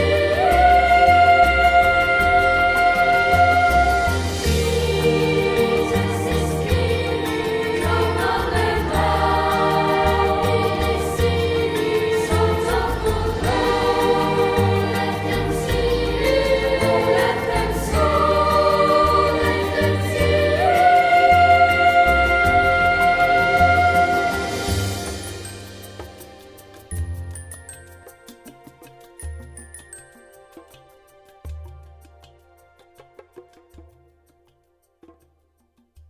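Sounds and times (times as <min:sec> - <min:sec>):
Ukrainian bell carol: 0:00.0 - 0:28.6.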